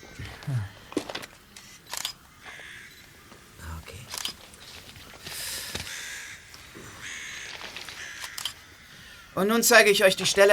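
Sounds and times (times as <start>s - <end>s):
speech: 0.5s - 0.7s, 9.4s - 10.5s
camera shutter clicks taking photos: 1.6s - 2.2s, 4.1s - 4.4s, 8.0s - 8.6s.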